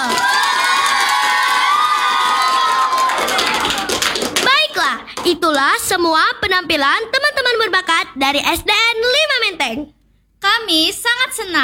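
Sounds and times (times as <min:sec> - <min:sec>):
crowd of children cheering and shouting for an elementary school performer: 0:00.0 - 0:04.2
speech: 0:05.2 - 0:11.6.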